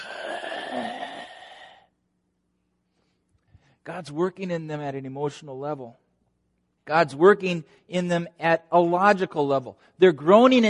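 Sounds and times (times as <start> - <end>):
person imitating a drawn-out groan: 0.0 - 1.9
speech: 3.9 - 6.0, 6.9 - 10.6.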